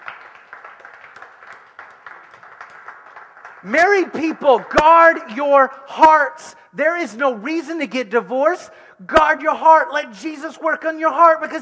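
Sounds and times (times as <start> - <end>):
audience clapping hands in praise: 0.0 - 5.3
speech: 3.6 - 11.6.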